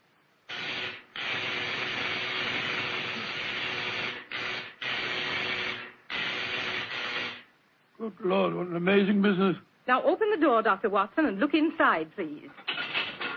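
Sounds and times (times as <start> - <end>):
electrical generator running: 0.5 - 7.5
speech: 8.0 - 12.6.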